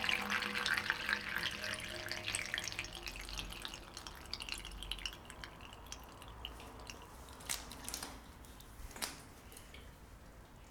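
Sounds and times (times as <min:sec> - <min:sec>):
water gurgling: 0:00.0 - 0:07.9.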